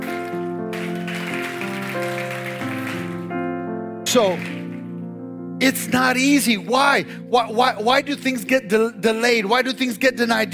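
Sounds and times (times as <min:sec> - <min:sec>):
audience clapping: 0:00.0 - 0:03.4, 0:04.1 - 0:04.9
speech: 0:04.1 - 0:04.6, 0:05.6 - 0:10.5.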